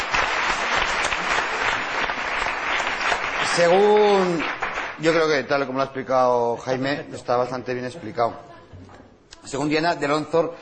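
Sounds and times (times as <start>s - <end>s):
audience applause: 0.0s - 5.2s
speech: 3.6s - 8.5s, 9.5s - 10.5s.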